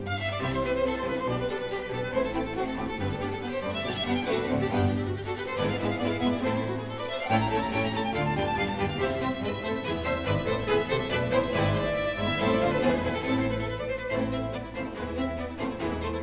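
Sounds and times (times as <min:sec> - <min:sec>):
violin concerto with strings and continuo, presto movement: 0:00.0 - 0:16.2.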